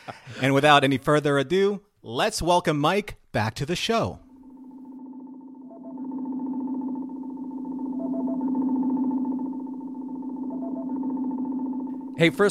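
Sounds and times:
speech: 0.1s - 4.2s, 12.2s - 12.4s
red alert alarm sound effect: 4.3s - 12.4s.

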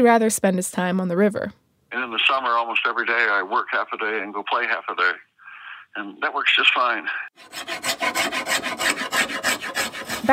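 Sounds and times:
speech: 0.0s - 5.3s, 5.9s - 8.6s
hand tool rasping across wood while carving a paddle: 7.4s - 10.3s.

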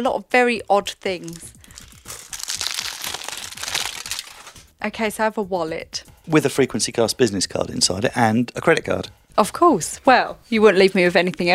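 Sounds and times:
speech: 0.0s - 1.6s, 4.8s - 11.5s
aluminium foil crinkling around a small wrapped object: 0.8s - 4.7s.

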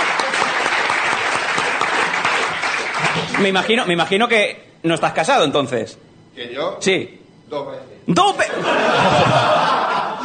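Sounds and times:
audience applause: 0.0s - 3.8s
laughter: 2.9s - 3.8s, 8.3s - 10.2s
speech: 3.4s - 9.9s.

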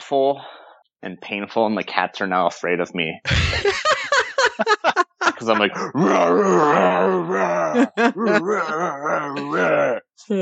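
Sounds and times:
speech: 0.1s - 10.3s
laughter: 3.3s - 9.8s
voice imitating a screaming growl: 5.7s - 10.0s.

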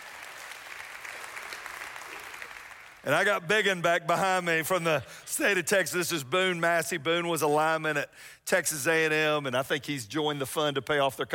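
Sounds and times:
audience applause: 0.0s - 3.0s
speech: 3.0s - 11.3s.

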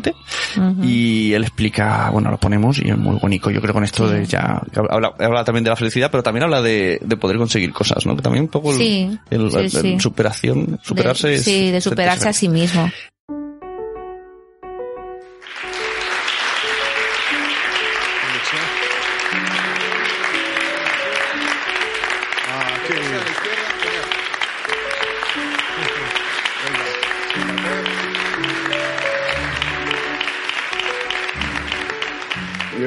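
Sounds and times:
speech: 0.0s - 13.1s
audience applause: 15.4s - 32.8s.

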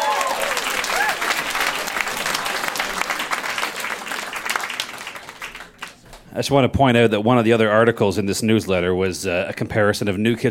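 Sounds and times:
audience applause welcoming a speaker at a live event: 0.0s - 6.1s
speech: 6.4s - 10.5s.

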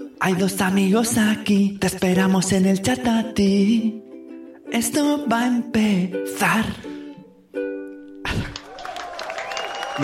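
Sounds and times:
speech: 0.2s - 4.0s, 4.7s - 6.9s
applause sound effect: 8.3s - 10.0s.

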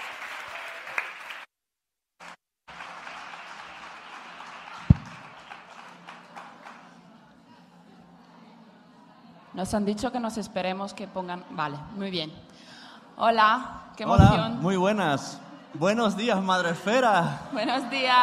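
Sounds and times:
audience applause: 0.0s - 1.5s, 2.2s - 7.0s
speech: 9.6s - 18.2s.

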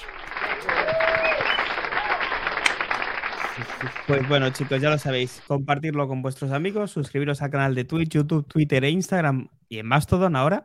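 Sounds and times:
crowd applause: 0.0s - 5.5s
faint whistles or shouts: 0.6s - 2.3s
speech: 3.6s - 10.6s.

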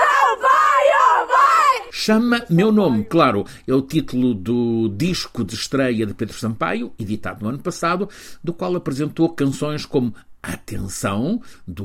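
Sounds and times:
festival crowd cheering: 0.0s - 1.9s
speech: 2.1s - 11.8s.

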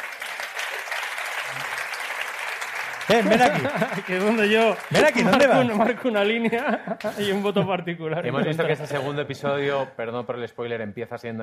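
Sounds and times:
audience applause: 0.0s - 6.6s
laughter: 3.0s - 9.3s
speech: 3.1s - 11.4s.

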